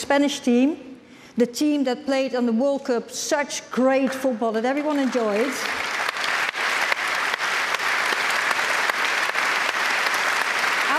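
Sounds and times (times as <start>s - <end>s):
speech: 0.1s - 5.9s
audience applause: 4.9s - 10.9s.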